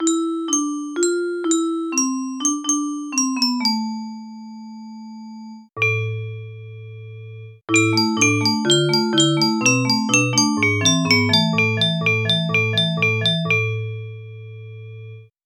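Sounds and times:
music box: 0.0s - 4.2s, 7.7s - 13.9s.

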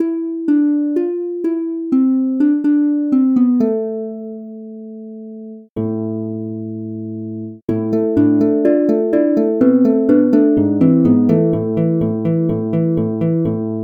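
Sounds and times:
harp: 0.0s - 4.6s, 7.7s - 13.8s.

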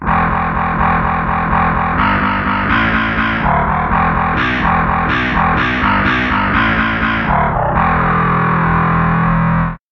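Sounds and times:
overdriven guitar: 0.0s - 9.8s
bass: 0.0s - 9.9s.

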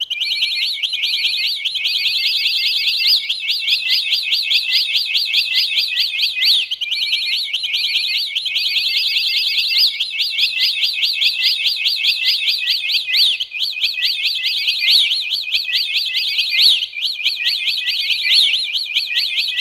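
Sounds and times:
bird tweeting: 0.0s - 19.5s.

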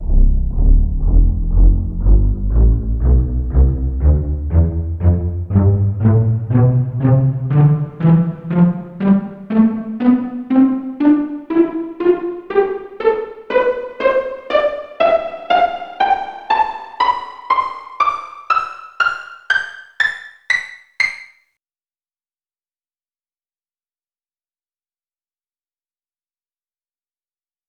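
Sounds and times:
pizzicato section: 0.0s - 21.3s.

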